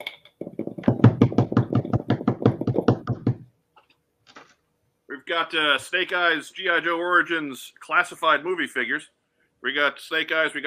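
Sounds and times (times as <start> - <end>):
drum roll tapped on a tabletop: 0.4 - 3.5
speech: 5.3 - 10.6.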